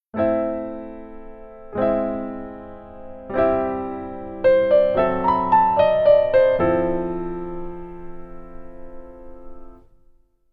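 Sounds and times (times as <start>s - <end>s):
keyboard: 0.1s - 10.1s.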